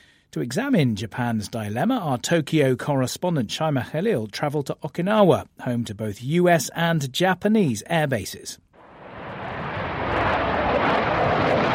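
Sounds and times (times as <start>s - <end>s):
speech: 0.4s - 8.7s
F-15 fighter jets taking off at Naha Military Air Base, Okinawa: 8.8s - 11.7s.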